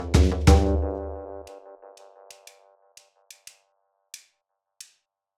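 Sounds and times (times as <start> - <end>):
marimba accompaniment: 0.1 - 1.1.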